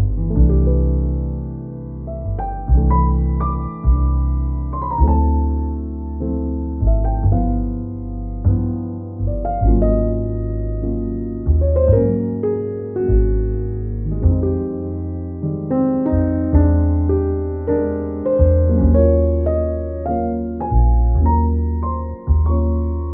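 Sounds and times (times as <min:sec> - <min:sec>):
soothing calming relaxing jazz podcast music: 0:00.0 - 0:23.1.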